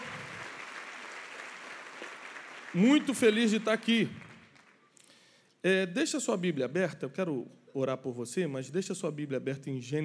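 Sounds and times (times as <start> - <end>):
audience applauding: 0.0 - 4.8
speech: 2.7 - 4.2, 5.6 - 10.0.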